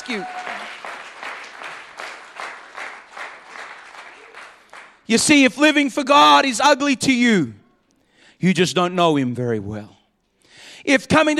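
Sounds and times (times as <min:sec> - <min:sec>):
church congregation clapping hands to the Lord during a sermon: 0:00.0 - 0:05.4
speech: 0:00.1 - 0:00.5, 0:05.1 - 0:07.6, 0:08.4 - 0:10.0, 0:10.8 - 0:11.3.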